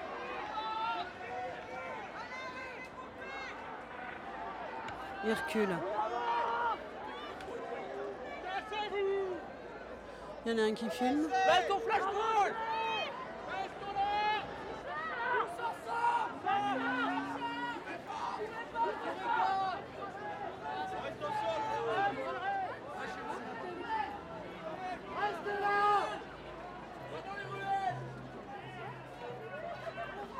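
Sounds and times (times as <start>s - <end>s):
crowd chatter at a street protest: 0.0s - 30.3s
speech: 5.2s - 6.0s, 10.4s - 12.7s
raised shouts at a street protest: 15.1s - 19.7s.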